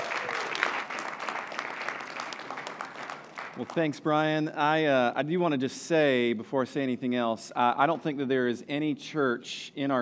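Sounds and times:
audience applause welcoming a speaker at a church: 0.0 - 4.0
speech: 3.6 - 9.9.

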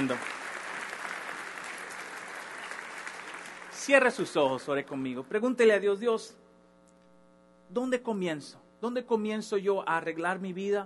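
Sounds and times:
speech: 0.0 - 0.4, 3.8 - 6.4, 7.7 - 10.8
large crowd applauding: 0.0 - 4.4.

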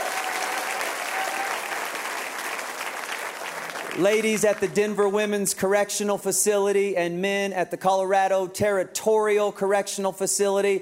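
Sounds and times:
church congregation clapping and cheering: 0.0 - 5.1
speech: 4.0 - 10.7.

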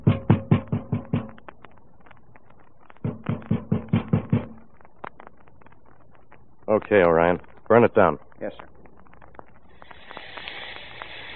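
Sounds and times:
banging on a door: 0.0 - 1.4, 3.0 - 4.6
speech: 6.7 - 8.7.

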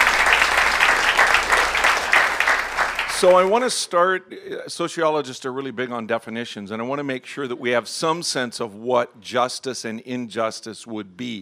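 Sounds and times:
audience applause: 0.0 - 3.6
speech: 3.2 - 11.3.

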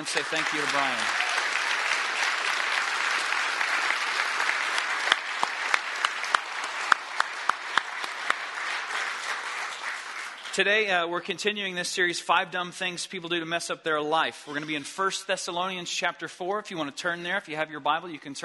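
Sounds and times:
speech: 0.0 - 1.3, 10.6 - 18.4
audience clapping: 0.0 - 11.1.

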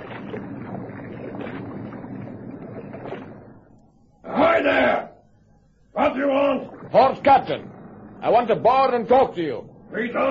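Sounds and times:
rowing boat oars dipping and pulling through water: 0.0 - 3.6
speech: 6.2 - 10.3.

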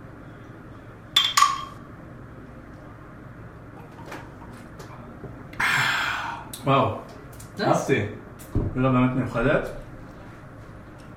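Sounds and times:
glasses clinking in a toast: 1.2 - 1.8
speech: 6.6 - 8.2, 8.8 - 9.8.

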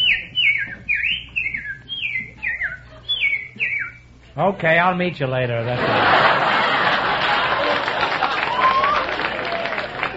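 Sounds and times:
whistled imitation of a bird call: 0.0 - 4.1
faint low hum: 0.0 - 10.1
speech: 4.4 - 6.5
laughter: 5.6 - 10.1.

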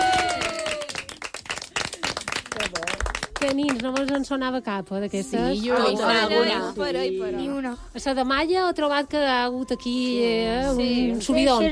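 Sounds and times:
strong applause: 0.0 - 3.8
speech: 3.4 - 11.6.

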